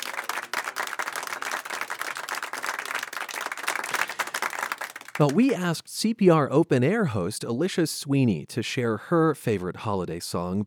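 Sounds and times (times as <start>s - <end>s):
audience applause: 0.0s - 5.7s
speech: 5.2s - 10.6s.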